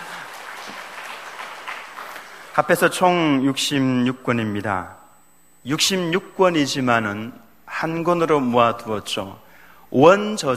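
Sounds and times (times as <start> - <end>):
church congregation applause during a Bible lesson: 0.0 - 2.8
speech: 2.6 - 5.0, 5.6 - 10.5.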